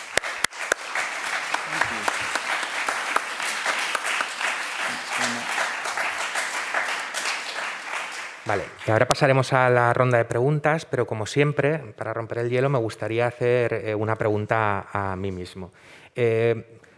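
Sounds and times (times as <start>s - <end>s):
audience applause: 0.0s - 9.0s
speech: 8.5s - 16.9s.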